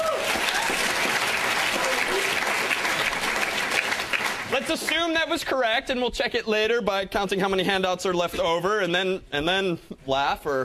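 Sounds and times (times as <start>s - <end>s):
audience applause: 0.0s - 5.3s
speech: 4.6s - 10.6s.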